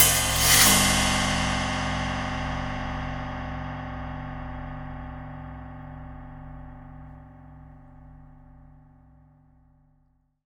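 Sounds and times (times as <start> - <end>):
cymbal hit: 0.0 - 4.8.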